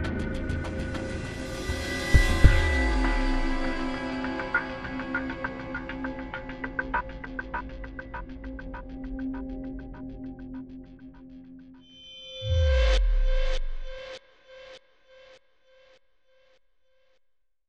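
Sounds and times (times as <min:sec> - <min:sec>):
intense outro music: 0:00.1 - 0:07.5, 0:12.5 - 0:14.7.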